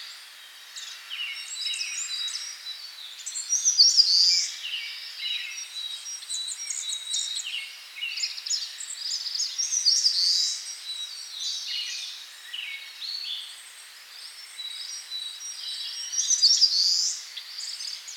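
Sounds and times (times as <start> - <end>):
birds in Karuizawa: 0.0 - 18.1.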